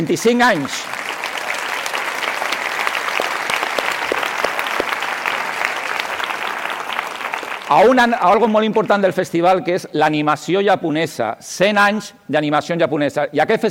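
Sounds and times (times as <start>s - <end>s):
speech: 0.0s - 1.0s, 7.7s - 13.7s
audience applause: 0.0s - 8.5s.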